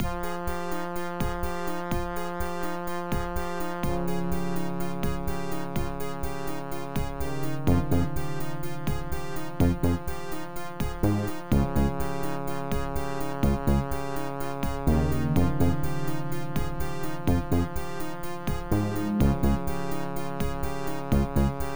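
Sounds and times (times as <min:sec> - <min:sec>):
OPL3 FM synthesizer music: 0:00.0 - 0:21.7.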